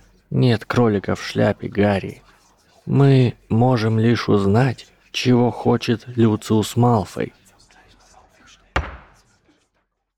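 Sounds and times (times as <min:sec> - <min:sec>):
speech: 0:00.4 - 0:02.3, 0:02.9 - 0:07.4
staff striking a lectern: 0:08.8 - 0:09.2.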